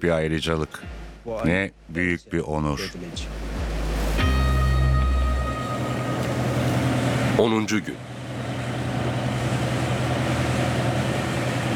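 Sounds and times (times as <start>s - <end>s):
speech: 0.0s - 3.5s, 7.4s - 8.1s
boat motor approaching: 2.8s - 11.7s.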